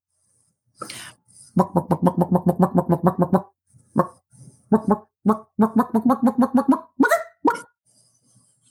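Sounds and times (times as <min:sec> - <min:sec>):
speech: 0:01.6 - 0:03.5
person imitating a chicken: 0:01.6 - 0:04.2, 0:04.8 - 0:07.7.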